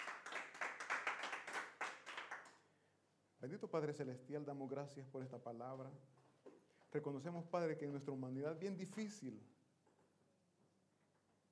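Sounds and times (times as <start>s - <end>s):
audience applause: 0.0s - 2.6s
speech: 3.4s - 6.2s, 6.9s - 9.6s.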